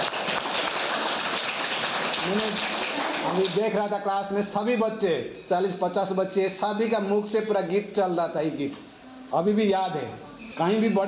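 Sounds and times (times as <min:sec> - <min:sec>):
hands clapping: 0:00.0 - 0:03.9
speech: 0:03.3 - 0:11.0.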